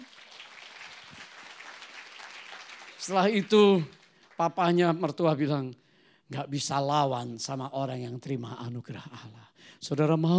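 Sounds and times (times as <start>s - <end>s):
audience applause: 0.0s - 4.4s
speech: 3.0s - 10.3s.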